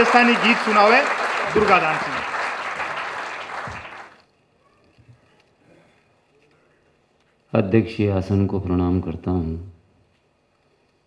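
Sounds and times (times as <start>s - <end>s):
speech: 0.0s - 2.3s, 7.5s - 9.7s
crowd clapping: 0.0s - 4.3s.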